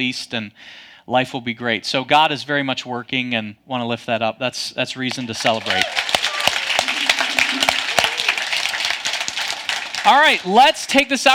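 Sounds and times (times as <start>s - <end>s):
speech: 0.0s - 6.1s, 10.0s - 11.3s
audience clapping: 5.0s - 10.8s.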